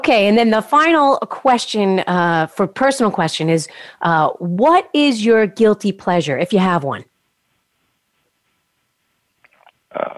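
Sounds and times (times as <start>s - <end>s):
speech: 0.0s - 7.1s, 9.9s - 10.1s
soft mouth clicks: 9.4s - 10.1s
wet swallowing gulp: 9.5s - 10.1s.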